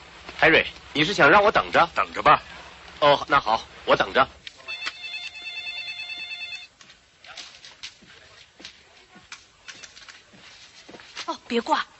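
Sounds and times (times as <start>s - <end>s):
speech: 0.4s - 4.4s, 11.5s - 11.9s
telephone ringing: 4.6s - 6.7s.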